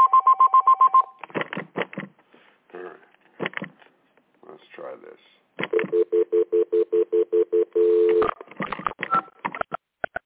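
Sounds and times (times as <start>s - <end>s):
telephone ringing with a warbling trill: 0.0s - 1.1s, 5.7s - 8.4s.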